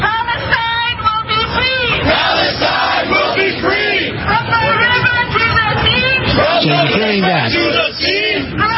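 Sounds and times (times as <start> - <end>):
faint street traffic: 0.0 - 8.7
large crowd chanting a protest slogan: 1.8 - 5.0, 6.0 - 8.7.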